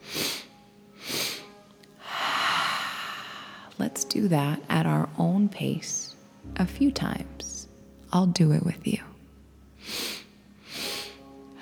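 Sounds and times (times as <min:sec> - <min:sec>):
quick sniffs in through the nose during a breathing exercise: 0:00.0 - 0:01.5
speech: 0:03.8 - 0:07.5, 0:08.1 - 0:09.1.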